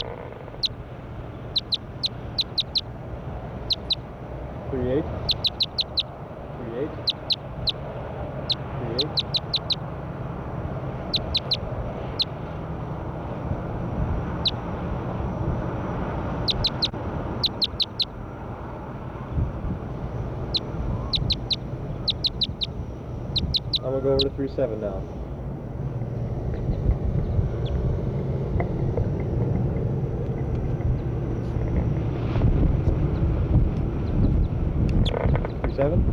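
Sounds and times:
bird chirping and warbling: 0.0 - 2.9, 3.5 - 4.1, 5.1 - 6.2, 6.8 - 10.3, 11.0 - 12.4, 14.3 - 14.6, 16.4 - 18.2, 20.1 - 25.1
steady low rumble: 0.0 - 36.1
speech: 24.4 - 25.2.

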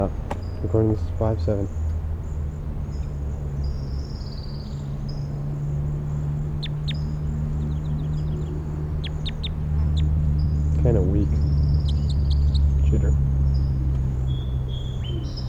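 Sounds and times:
song sparrow singing: 0.0 - 15.4
speech: 0.1 - 1.8.

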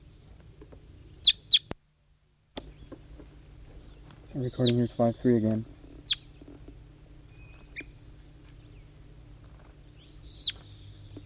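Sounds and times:
wild bird calling in the distance: 0.0 - 1.8, 2.5 - 11.2
speech: 4.4 - 5.7.

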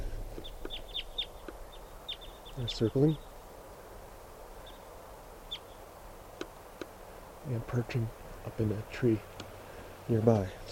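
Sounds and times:
type 2 crossbill flight calls: 0.0 - 3.9, 4.5 - 7.2
steady low rumble: 0.0 - 10.6
speech: 2.6 - 3.3, 7.5 - 9.4, 10.1 - 10.6.

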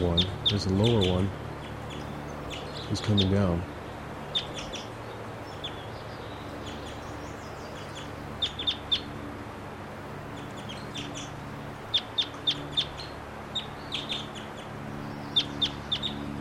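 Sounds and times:
speech: 0.0 - 1.4, 2.9 - 3.7
wild bird calling: 0.0 - 9.3, 10.0 - 16.3.

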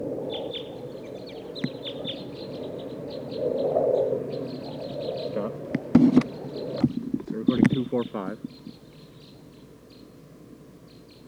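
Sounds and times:
flock of type 2 birds calling in a pine tree: 0.0 - 11.2
speech: 7.9 - 8.7.

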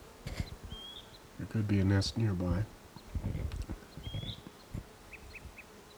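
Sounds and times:
wild bird calling from a pine: 0.0 - 5.9
speech: 1.4 - 2.8.

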